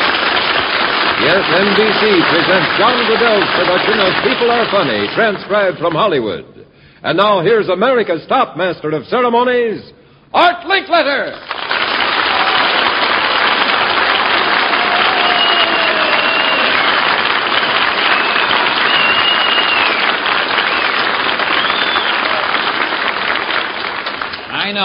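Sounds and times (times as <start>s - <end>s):
studio audience in Hollywood applauding a game-show host: 0.0s - 5.9s, 11.4s - 24.8s
speech: 1.3s - 11.6s, 24.7s - 24.8s.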